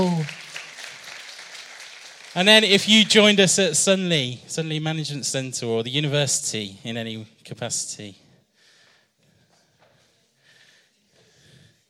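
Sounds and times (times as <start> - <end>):
audience applause: 0.0 - 3.4
speech: 2.4 - 8.2.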